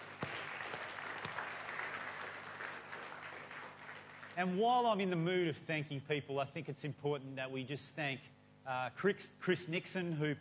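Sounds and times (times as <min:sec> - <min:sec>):
audience applause: 0:00.0 - 0:04.6
speech: 0:04.4 - 0:10.3.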